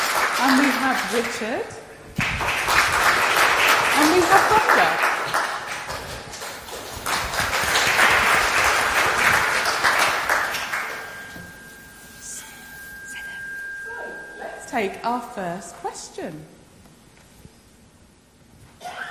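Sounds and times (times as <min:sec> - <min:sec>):
audience applause: 0:00.0 - 0:01.4, 0:02.2 - 0:11.2
speech: 0:00.4 - 0:01.8, 0:04.0 - 0:05.4, 0:14.8 - 0:16.6.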